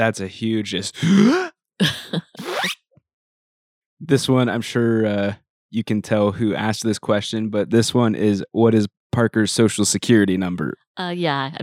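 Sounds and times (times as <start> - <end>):
speech: 0.0 - 2.3, 4.1 - 11.6
person imitating a zipper by inhaling: 2.4 - 2.8.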